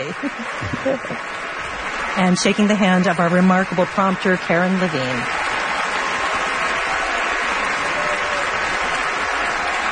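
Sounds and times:
laughter: 0.0 - 1.4
speech: 0.0 - 1.4, 2.2 - 5.4
opera house audience applause: 0.0 - 9.9.

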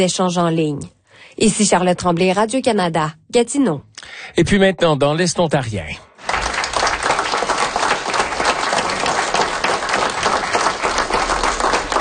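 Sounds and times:
speech: 0.0 - 6.4
applause at the Conseil des Comtés Unis de Prescott et Russell: 6.2 - 11.9.

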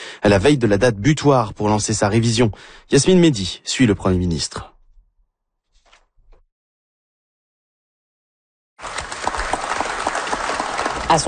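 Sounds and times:
speech: 0.2 - 4.7
crowd applauding arriving prime minister Mark Carney in Kujawak: 8.8 - 11.2.

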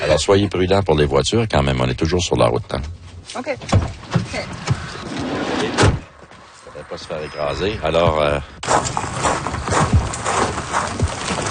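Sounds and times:
speech: 0.2 - 6.0, 6.9 - 9.1
rocks falling: 8.6 - 11.5.

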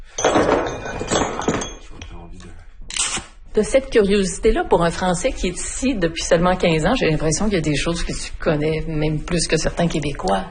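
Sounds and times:
hammer striking metal or stone: 0.1 - 2.2
speech: 3.6 - 10.4.

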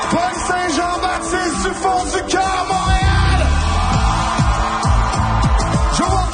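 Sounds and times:
crowd cheering at celebrations in Parc Maisonneuve, Montréal: 0.0 - 6.3.

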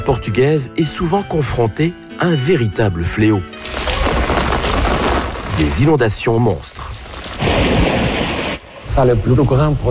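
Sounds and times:
speech: 0.1 - 3.8, 5.6 - 7.6, 9.0 - 9.8
heavy rain in Lisbon: 3.6 - 5.8, 7.0 - 8.8.

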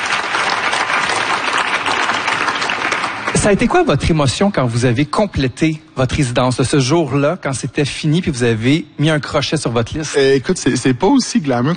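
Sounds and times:
audience applause: 0.0 - 3.9
speech: 3.4 - 11.7.

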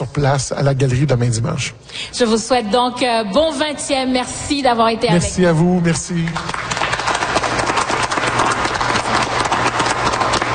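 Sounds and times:
speech: 0.2 - 6.7
audience applause in an atrium: 6.0 - 10.5.

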